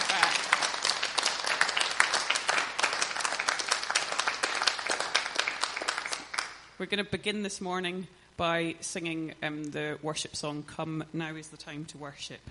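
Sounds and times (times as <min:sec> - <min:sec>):
audience clapping: 0:00.0 - 0:06.7
speech: 0:06.8 - 0:12.5.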